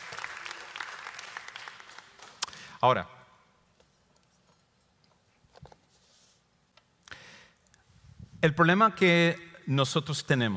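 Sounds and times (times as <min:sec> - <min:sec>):
applause: 0:00.0 - 0:02.7
speech: 0:02.8 - 0:03.2, 0:08.4 - 0:10.5.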